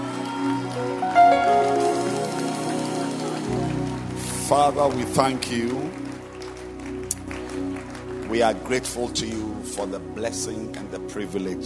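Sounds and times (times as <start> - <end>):
loud audience hand clapping: 0.0 - 10.8
speech: 4.5 - 6.0, 8.3 - 11.6.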